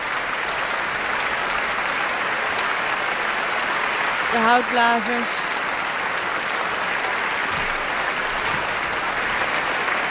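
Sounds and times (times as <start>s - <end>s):
large audience applause for orchestra soloists: 0.0s - 10.0s
speech: 4.3s - 5.4s.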